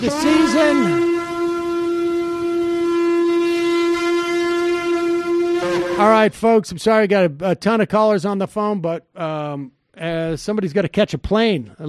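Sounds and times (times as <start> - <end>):
speech: 0.0 - 1.1, 6.0 - 11.8
low buzzy horn sound effect: 0.0 - 6.3.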